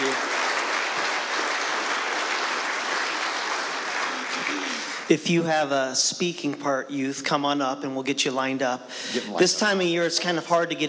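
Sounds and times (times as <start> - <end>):
audience applause: 0.0 - 5.1
speech: 5.1 - 10.8.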